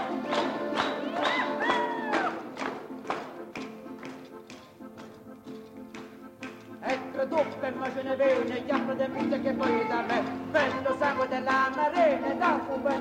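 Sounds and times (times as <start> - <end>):
tarantella folk music with verses: 0.0 - 12.9.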